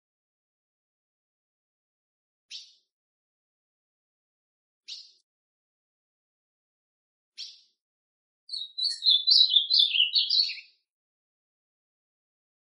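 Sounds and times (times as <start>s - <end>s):
ultramarine grosbeak song: 2.5s - 2.8s, 4.9s - 5.2s, 7.4s - 7.8s, 8.5s - 10.8s.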